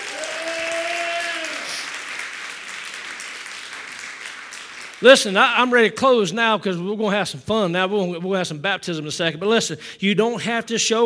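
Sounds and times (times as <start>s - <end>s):
audience clapping hands: 0.0s - 5.7s
speech: 5.0s - 11.0s.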